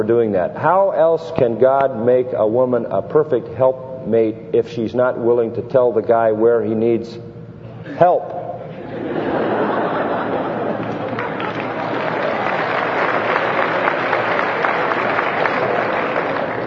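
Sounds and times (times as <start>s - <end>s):
speech: 0.0s - 8.4s
laughter: 7.8s - 16.6s
audience of women clapping: 10.4s - 16.6s.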